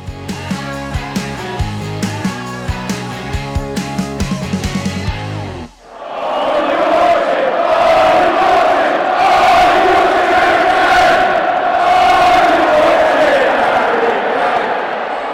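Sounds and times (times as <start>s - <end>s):
rhythmic music: 0.0s - 5.8s
football fans chanting in stadium: 5.8s - 15.3s.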